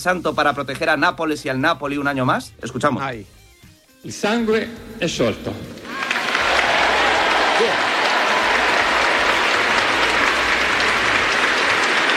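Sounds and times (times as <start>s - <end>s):
speech: 0.0s - 3.4s, 4.0s - 5.8s
audience applauding during mass: 5.8s - 12.1s.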